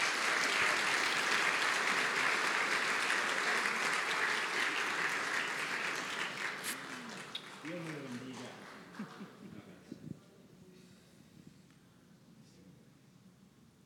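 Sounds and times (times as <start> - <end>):
crowd applauding: 0.0 - 9.4.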